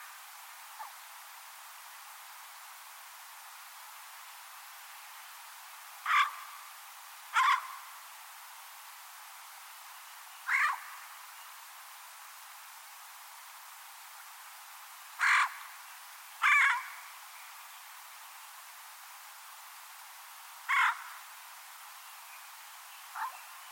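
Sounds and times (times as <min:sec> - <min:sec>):
bird cawing: 0:06.0 - 0:06.5, 0:07.3 - 0:07.9, 0:10.5 - 0:11.0, 0:15.2 - 0:15.7, 0:16.4 - 0:17.0, 0:20.7 - 0:21.2.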